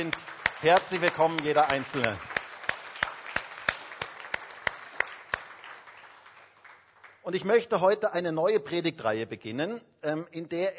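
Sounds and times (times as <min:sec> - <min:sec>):
speech: 0:00.0 - 0:02.3, 0:07.3 - 0:10.7
applause: 0:00.0 - 0:08.0.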